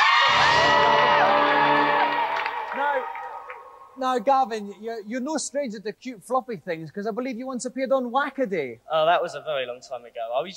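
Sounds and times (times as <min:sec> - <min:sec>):
game show studio audience cheering and whooping: 0:00.0 - 0:04.0
speech: 0:04.0 - 0:10.5.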